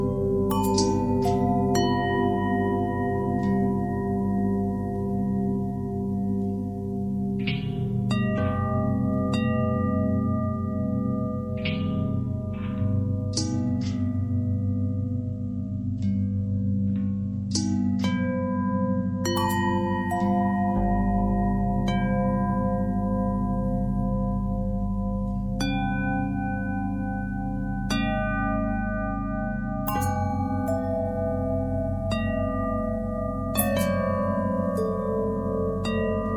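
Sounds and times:
long harmonic bell tone: 0:00.0 - 0:17.0, 0:17.7 - 0:36.3.

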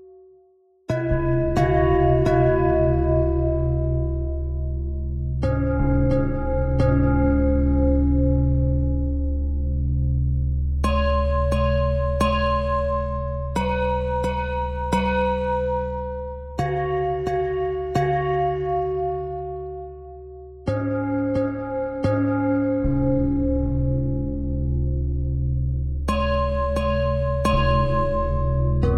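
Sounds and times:
bells playing a pentatonic pattern: 0:00.9 - 0:10.0, 0:10.8 - 0:28.9.

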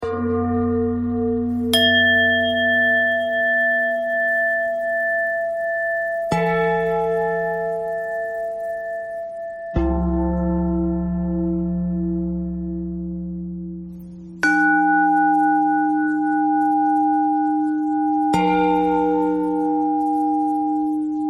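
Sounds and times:
bending bell tone: 0:00.0 - 0:21.2.

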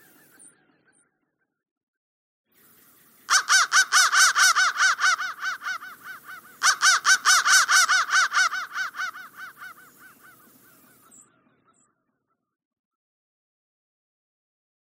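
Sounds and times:
crow cawing: 0:03.3 - 0:11.8.

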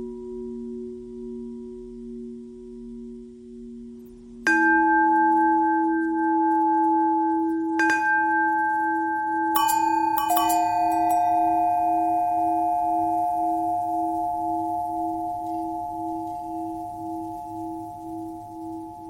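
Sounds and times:
long bell tones: 0:04.5 - 0:19.0.

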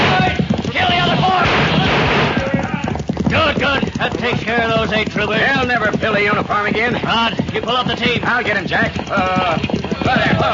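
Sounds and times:
people shouting: 0:00.0 - 0:03.6, 0:09.1 - 0:10.5
rifle gunfire volley in a radio drama ambush: 0:01.4 - 0:02.5
speech: 0:04.9 - 0:10.5.

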